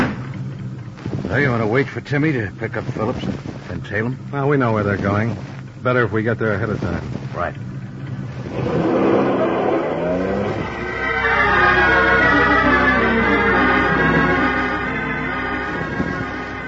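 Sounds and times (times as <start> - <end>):
speech: 1.3 - 7.7
car driving fast: 7.8 - 16.6.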